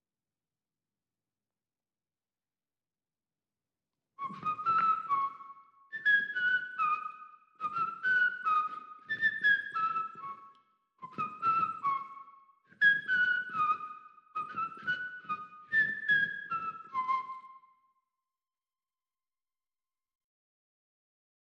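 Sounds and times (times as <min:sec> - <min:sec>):
clean whistle: 0:04.2 - 0:18.1.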